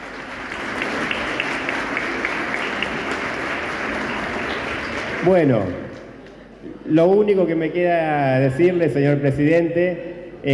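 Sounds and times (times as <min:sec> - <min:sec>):
audience applause: 0:00.0 - 0:05.8
speech: 0:05.2 - 0:05.8, 0:06.9 - 0:10.5.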